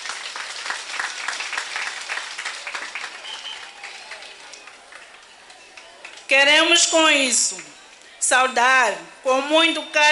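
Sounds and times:
audience applause: 0.0 - 6.3
speech: 6.3 - 10.0.

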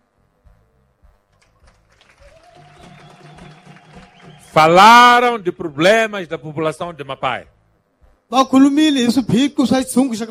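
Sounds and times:
audience clapping: 1.3 - 5.8
speech: 4.5 - 7.5, 8.3 - 10.2.

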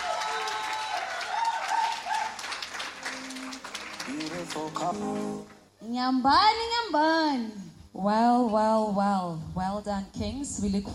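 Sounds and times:
high-pitched whoops: 0.0 - 2.4
audience applause: 0.0 - 5.7
speech: 4.5 - 10.9.

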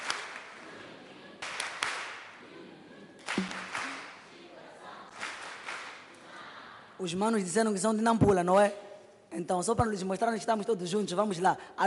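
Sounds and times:
group applause: 0.0 - 0.6, 1.4 - 2.4, 3.2 - 4.3, 5.1 - 6.1
speech: 7.0 - 11.8.

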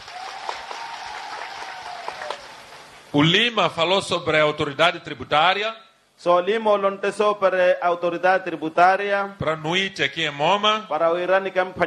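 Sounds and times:
audience applause: 0.0 - 3.1
speech: 3.1 - 11.8.

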